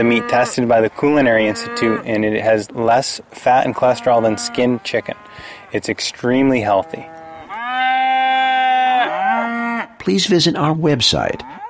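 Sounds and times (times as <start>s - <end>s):
cattle mooing: 0.0s - 3.0s, 3.6s - 5.7s, 6.6s - 10.0s, 11.4s - 11.6s
speech: 0.0s - 7.2s, 10.0s - 11.6s.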